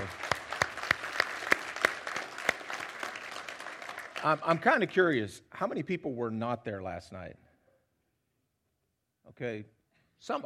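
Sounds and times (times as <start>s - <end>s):
audience applause: 0.0s - 5.0s
speech: 4.2s - 7.4s, 9.3s - 10.4s.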